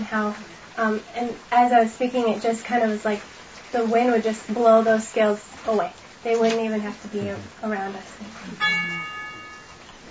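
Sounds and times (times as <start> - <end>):
speech: 0.1 - 8.8
doorbell ringing: 8.6 - 9.9.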